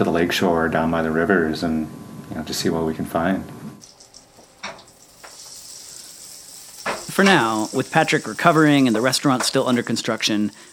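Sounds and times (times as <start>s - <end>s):
speech: 0.0s - 3.6s, 7.2s - 10.7s
egg frying in a pan: 3.8s - 10.7s.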